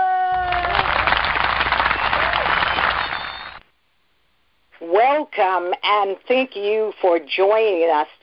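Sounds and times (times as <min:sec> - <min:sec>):
audience applause welcoming the host of a religious talk show: 0:00.2 - 0:03.6
speech: 0:05.4 - 0:08.2.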